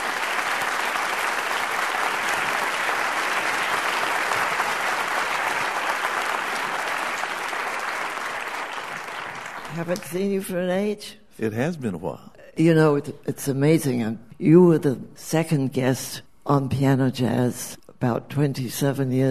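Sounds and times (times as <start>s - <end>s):
audience applause welcoming a jazz pianist to the stage: 0.0s - 10.2s
speech: 9.8s - 19.2s.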